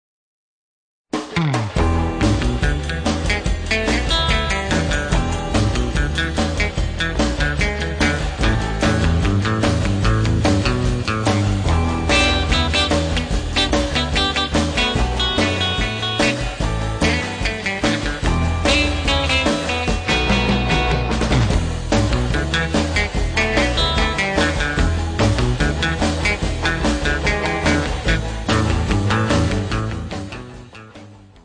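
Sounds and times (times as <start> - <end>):
drum riot: 1.2 - 30.5.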